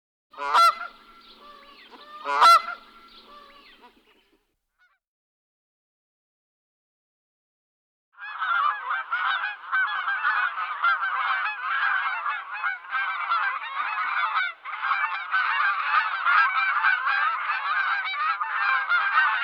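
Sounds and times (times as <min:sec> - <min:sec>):
many geese honking: 0:00.4 - 0:04.2, 0:08.2 - 0:19.4.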